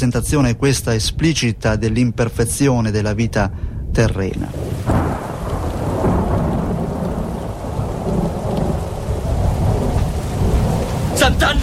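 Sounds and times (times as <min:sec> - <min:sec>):
speech: 0:00.0 - 0:05.0, 0:11.2 - 0:11.6
deep rolling thunder: 0:04.3 - 0:11.6
heavy thunderstorm rain: 0:04.3 - 0:11.6.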